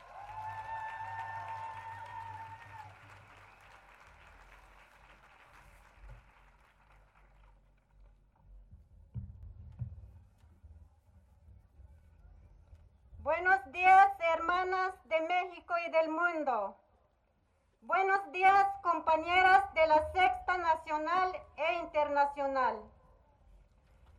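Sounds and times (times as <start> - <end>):
audience applause: 0.0 - 8.0
speech: 13.3 - 16.8, 17.9 - 22.9.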